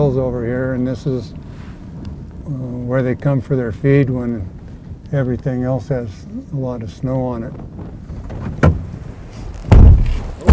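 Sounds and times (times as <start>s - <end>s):
speech: 0.0s - 1.5s, 2.5s - 8.6s
quiet rumbling background: 0.0s - 10.5s
truck door clunking shut: 7.8s - 10.5s.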